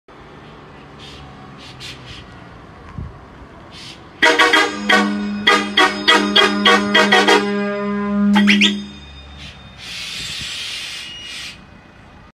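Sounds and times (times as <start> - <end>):
Bosch air horn valve with compressor: 4.2 - 9.0.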